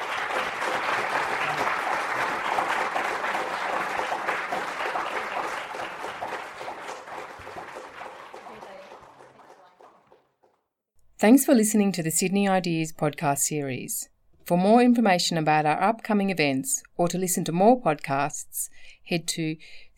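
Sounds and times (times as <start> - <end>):
audience applause: 0.0 - 10.4
speech: 11.2 - 19.9.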